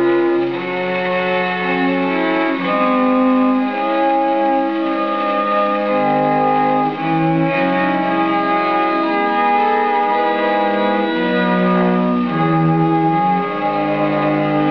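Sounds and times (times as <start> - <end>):
chest of six viols playing a fantasy: 0.0 - 14.6.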